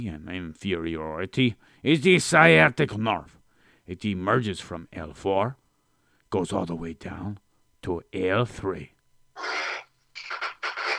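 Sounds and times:
speech: 0.0s - 5.6s, 6.3s - 9.5s
chair creaking: 9.4s - 10.9s.

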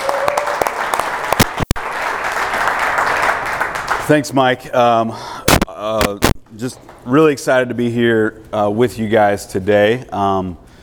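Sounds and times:
church audience applause in North Carolina: 0.0s - 4.2s
speech: 4.1s - 10.6s.

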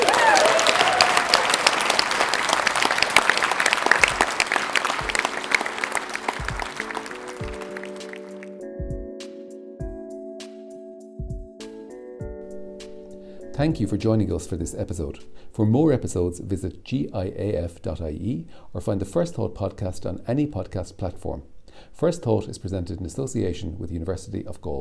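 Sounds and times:
audience applause: 0.0s - 8.6s
speech: 13.6s - 24.7s.

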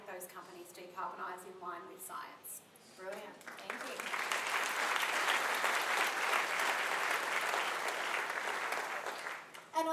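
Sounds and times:
speech: 0.3s - 4.3s
audience applause: 3.5s - 9.5s.

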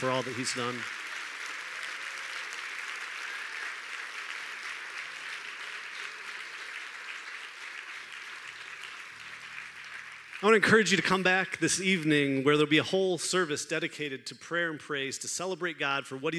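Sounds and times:
speech: 0.0s - 1.0s, 10.4s - 16.3s
hand clap of praise: 0.0s - 11.2s.

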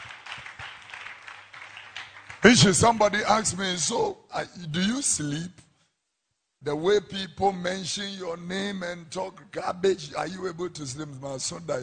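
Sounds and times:
audience clapping: 0.0s - 3.2s
speech: 2.4s - 5.6s, 6.6s - 11.8s.

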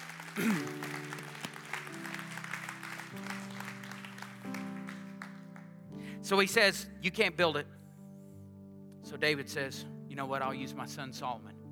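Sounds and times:
audience applause: 0.0s - 5.8s
organ-like chords: 0.0s - 11.6s
speech: 0.4s - 0.8s, 6.3s - 7.8s, 9.1s - 11.5s.

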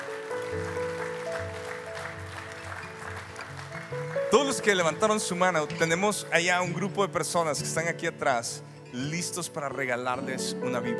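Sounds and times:
audience applause: 0.0s - 5.3s
speech: 3.9s - 10.9s.

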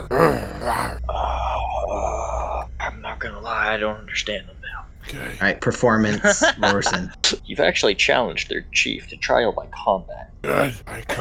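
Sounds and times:
person imitating a growl: 0.0s - 2.7s, 5.1s - 5.4s, 10.5s - 11.1s
speech: 3.7s - 11.1s
laughter: 6.1s - 7.2s.

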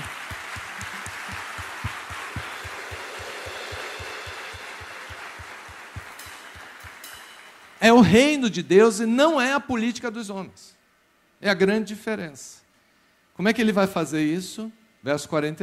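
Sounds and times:
audience applause: 0.0s - 7.8s
regular low thumping pulse: 0.0s - 7.8s
speech: 7.8s - 10.8s, 11.4s - 12.6s, 13.4s - 15.6s.

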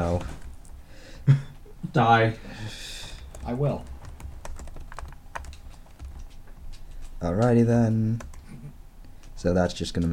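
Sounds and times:
speech: 2.0s - 2.8s, 3.4s - 3.9s, 7.2s - 8.3s, 9.4s - 10.1s
typing notes on a computer keyboard: 2.9s - 8.6s.

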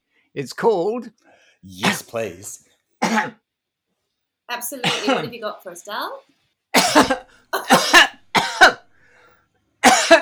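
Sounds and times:
speech: 0.4s - 3.4s, 4.5s - 8.1s
person coughing: 1.8s - 2.2s, 3.0s - 3.4s, 4.8s - 5.4s, 6.8s - 8.9s, 9.8s - 10.2s.

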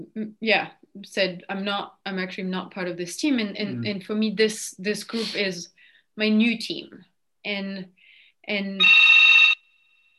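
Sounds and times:
speech: 0.0s - 9.1s
landline telephone ringing: 8.8s - 10.1s.

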